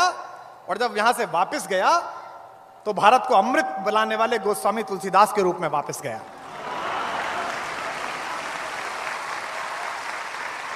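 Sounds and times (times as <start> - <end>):
speech: 0.7 - 2.2, 2.8 - 6.4
audience applause: 6.3 - 10.7.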